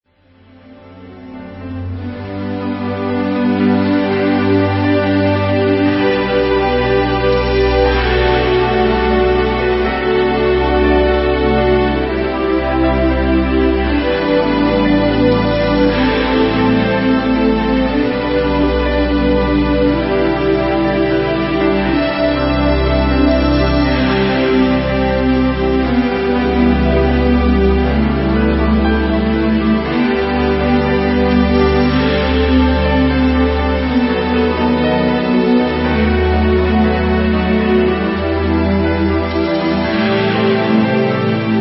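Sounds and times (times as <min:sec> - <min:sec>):
symphonic music: 0:00.3 - 0:41.5.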